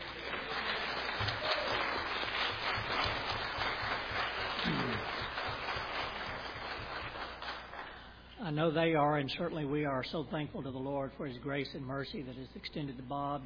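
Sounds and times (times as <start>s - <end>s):
church congregation clapping to welcome a couple back after illness: 0.0s - 8.3s
speech: 8.5s - 13.4s.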